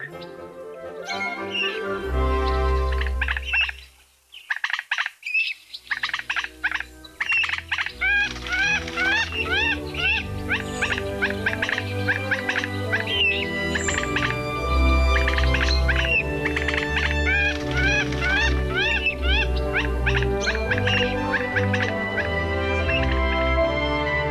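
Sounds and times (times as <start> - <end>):
common moorhens with chicks chirping at a toad pond: 0.0 - 0.4, 1.0 - 24.2.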